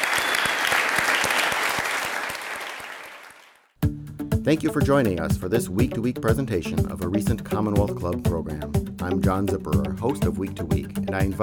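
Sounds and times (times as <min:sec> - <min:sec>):
audience applause: 0:00.0 - 0:03.6
speech: 0:04.4 - 0:11.4.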